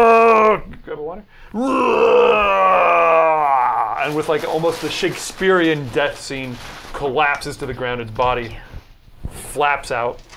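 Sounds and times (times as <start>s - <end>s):
person imitating monster scream: 0.0s - 0.7s, 1.5s - 4.2s
speech: 0.8s - 2.1s, 4.1s - 8.7s, 9.3s - 10.3s.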